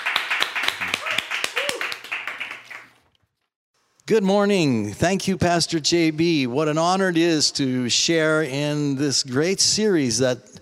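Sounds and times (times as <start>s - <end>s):
audience clapping to welcome a pastor at a church service: 0.0s - 3.2s
speech: 4.1s - 10.6s.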